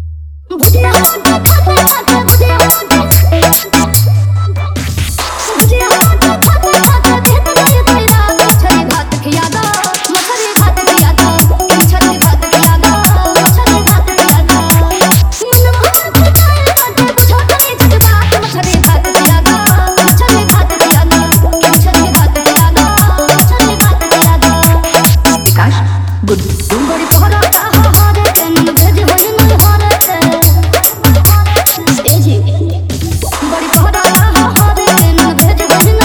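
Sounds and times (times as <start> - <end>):
Bhojpuri DJ remix songs: 0.5 - 36.0.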